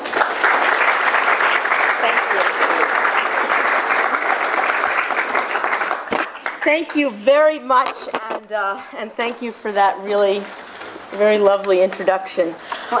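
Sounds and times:
lecture audience applause welcoming a rabbi: 0.0s - 6.7s
speech: 6.6s - 12.9s.

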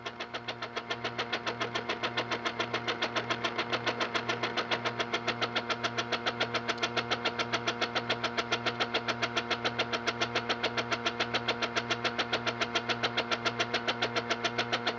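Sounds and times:
vacuum spatulator mixing dental plaster: 1.0s - 14.9s.

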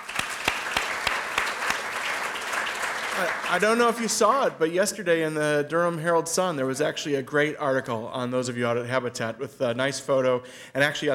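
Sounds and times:
audience applause: 0.0s - 4.5s
speech: 3.2s - 11.1s.

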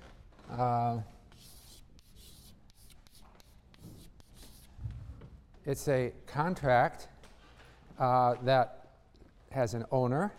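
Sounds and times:
speech: 0.6s - 1.2s, 5.6s - 7.1s, 8.0s - 8.8s, 9.5s - 10.3s
handwriting of a single word: 1.3s - 4.7s.

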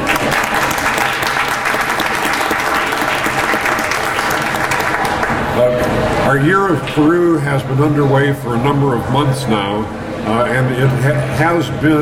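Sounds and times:
audience applause: 0.0s - 5.6s
speech: 6.3s - 12.0s.

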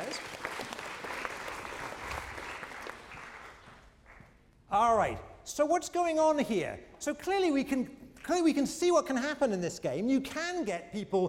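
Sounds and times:
round of applause from audience: 0.0s - 4.2s
speech: 4.7s - 11.2s.

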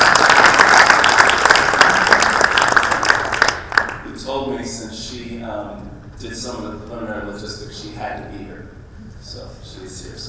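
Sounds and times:
audience applause: 0.0s - 4.0s
speech: 6.2s - 10.2s.

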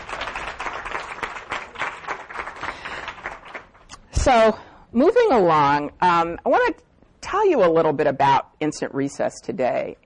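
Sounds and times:
audience applause: 0.0s - 3.8s
speech: 4.2s - 10.0s.

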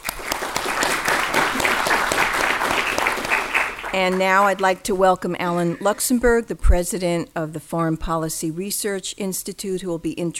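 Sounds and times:
audience applause at a history lecture event: 0.0s - 4.7s
speech: 3.9s - 10.3s.

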